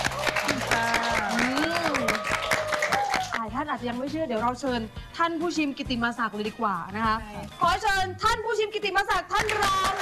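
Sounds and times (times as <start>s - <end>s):
audience applause: 0.0s - 3.4s
speech: 3.8s - 10.0s.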